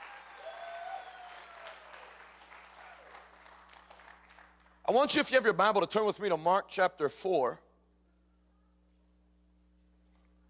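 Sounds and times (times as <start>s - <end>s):
audience clapping hands: 0.0s - 4.8s
speech: 4.9s - 7.6s.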